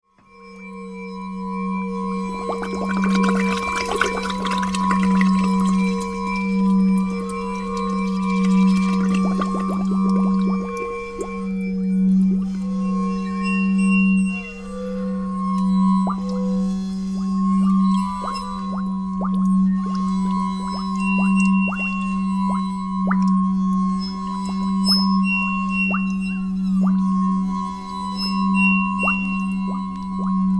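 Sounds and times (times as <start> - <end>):
glass orchestra playing: 0.2 - 30.5.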